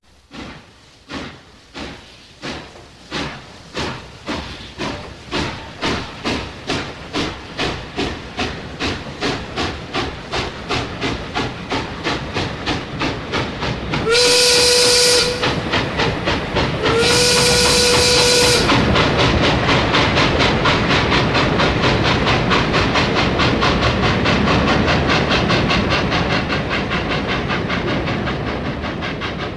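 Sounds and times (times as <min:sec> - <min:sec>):
steam locomotive chuffing: 0:00.0 - 0:29.5
steam locomotive whistle blasts: 0:14.0 - 0:15.6, 0:16.8 - 0:18.8.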